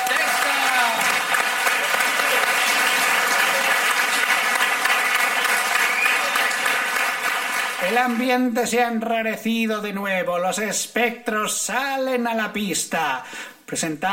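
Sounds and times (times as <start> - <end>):
audience applause: 0.0 - 8.4
speech: 7.9 - 14.1.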